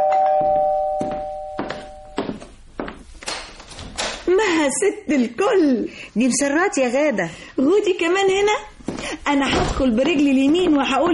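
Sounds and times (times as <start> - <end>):
doorbell ringing: 0.0 - 2.2
speech: 4.7 - 8.7, 9.3 - 11.1.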